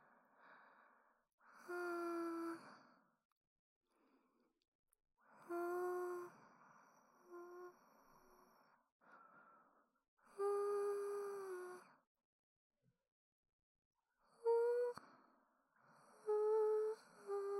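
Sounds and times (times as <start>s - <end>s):
person singing a lullaby: 1.6s - 2.7s, 5.4s - 6.3s, 10.3s - 11.9s, 14.4s - 15.0s, 16.2s - 17.5s.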